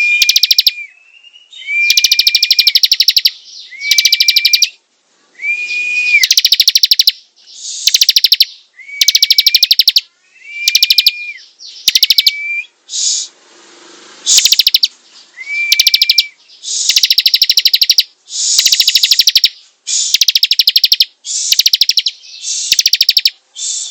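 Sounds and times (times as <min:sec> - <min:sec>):
bar-winged prinia song: 0:00.0 - 0:00.8, 0:01.8 - 0:04.8, 0:06.2 - 0:12.4, 0:14.3 - 0:23.8.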